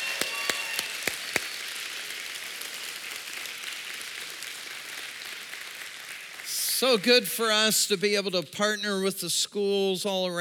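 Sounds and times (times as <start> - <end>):
audience applause: 0.0 - 7.3
speech: 6.8 - 10.3.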